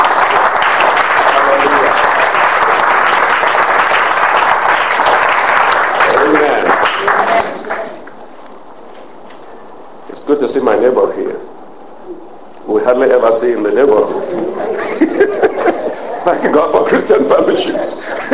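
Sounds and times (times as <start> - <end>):
audience clapping: 0.0 - 8.2
speech: 10.5 - 11.6, 12.7 - 14.8, 16.2 - 18.2
laughter: 14.1 - 18.3.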